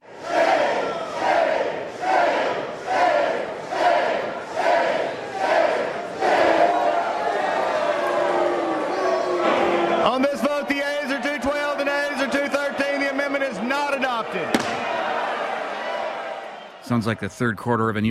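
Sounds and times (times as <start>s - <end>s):
lawmakers booing and hissing: 0.0s - 16.6s
speech: 17.0s - 18.0s.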